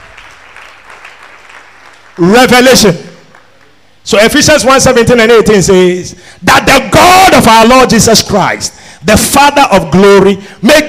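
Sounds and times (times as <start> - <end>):
audience clapping hands: 0.0 - 3.9
speech: 2.2 - 3.1, 4.1 - 10.8.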